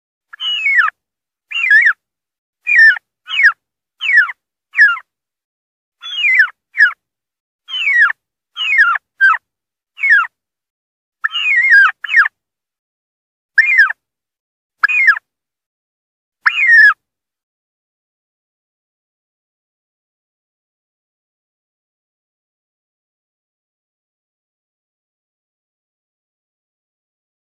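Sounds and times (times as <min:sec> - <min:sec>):
wild turkey distress calling: 0:00.3 - 0:02.0, 0:02.7 - 0:05.0, 0:06.0 - 0:07.0, 0:07.7 - 0:09.4, 0:10.0 - 0:10.3, 0:11.2 - 0:12.3, 0:13.6 - 0:14.0, 0:14.8 - 0:15.2, 0:16.4 - 0:17.0.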